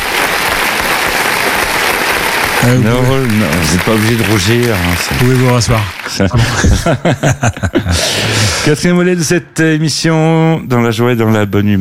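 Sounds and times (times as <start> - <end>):
applause, a short ovation: 0.0 - 6.8
laughter: 2.6 - 8.8
speech: 2.6 - 11.8.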